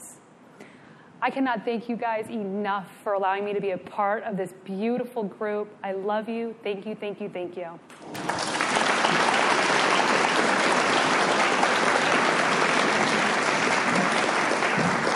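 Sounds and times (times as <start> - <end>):
speech: 1.2 - 8.4
audience applause: 7.9 - 15.1.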